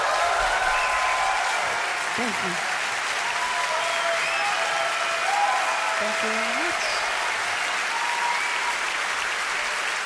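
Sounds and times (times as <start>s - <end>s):
audience applause: 0.0s - 10.0s
speech: 2.2s - 2.7s, 6.0s - 7.0s.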